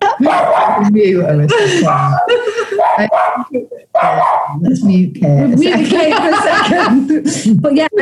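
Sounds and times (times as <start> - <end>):
laughter: 0.0 - 0.9, 1.5 - 3.9, 5.5 - 7.6
dog barking excitedly: 0.1 - 1.0, 1.8 - 4.6
speech: 0.2 - 7.9.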